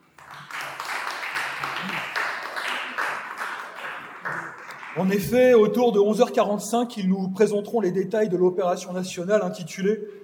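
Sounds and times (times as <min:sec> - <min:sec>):
audience applause: 0:00.0 - 0:05.3
speech: 0:05.0 - 0:10.2.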